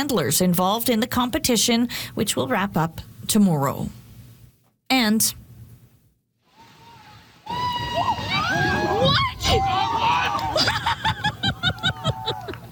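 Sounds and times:
speech: 0.0 - 4.0, 4.9 - 5.4
crowd cheering and laughing after a hole-in-one: 6.6 - 12.6
rhythmic whoops and claps: 6.6 - 12.6.

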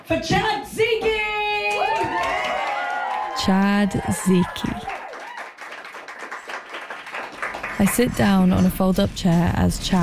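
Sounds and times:
speech: 0.1 - 0.9, 3.4 - 4.9, 7.8 - 10.0
small crowd cheering and whooping: 1.6 - 5.7
applause: 1.7 - 8.5.

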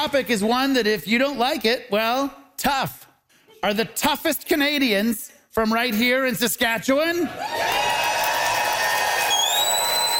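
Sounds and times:
speech: 0.0 - 3.0, 3.6 - 7.8
live audience cheering and applauding: 7.4 - 10.1
sharp high whistles: 9.2 - 10.1.

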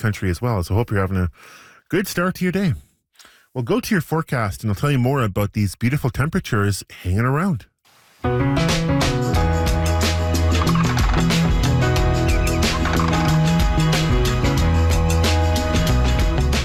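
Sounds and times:
speech: 0.0 - 2.9, 3.6 - 8.6
background music: 8.2 - 16.6
seagulls calling in background music: 10.3 - 14.0.

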